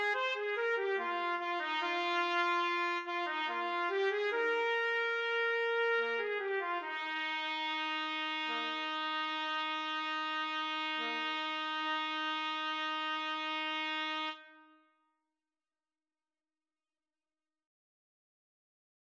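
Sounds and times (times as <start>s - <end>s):
trumpet trio karaoke backing: 0.0s - 14.4s.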